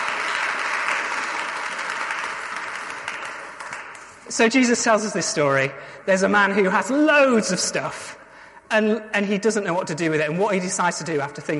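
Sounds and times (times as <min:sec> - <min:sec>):
audience clapping: 0:00.0 - 0:04.3
speech: 0:04.3 - 0:11.5.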